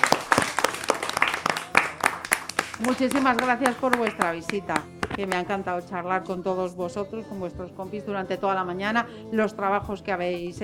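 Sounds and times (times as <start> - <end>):
schoolchildren applauding: 0.0 - 5.4
speech: 2.8 - 10.6.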